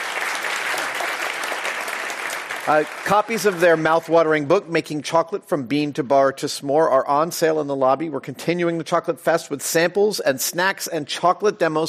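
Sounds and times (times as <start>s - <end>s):
round of applause: 0.0s - 4.2s
speech: 2.6s - 11.8s.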